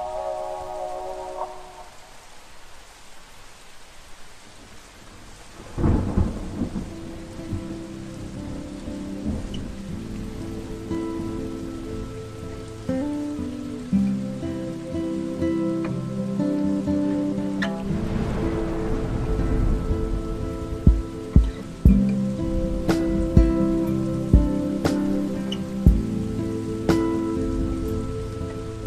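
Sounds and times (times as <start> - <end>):
lo-fi hip hop beat: 6.1 - 28.8.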